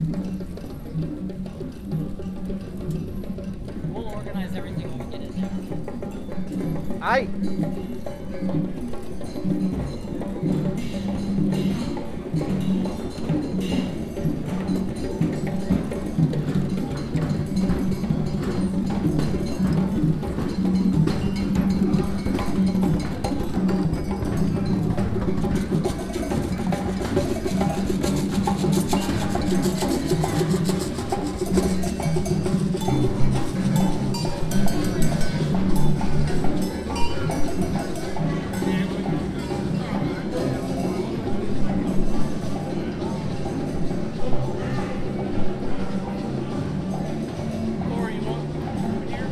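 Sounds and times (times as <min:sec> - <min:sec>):
people drumming in Chinatown and a flea market: 0:00.0 - 0:49.2.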